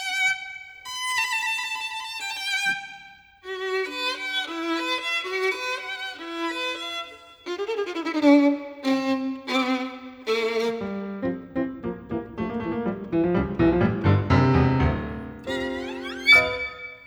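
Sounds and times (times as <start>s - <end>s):
violin: 0.0s - 17.0s
piano: 8.9s - 17.0s.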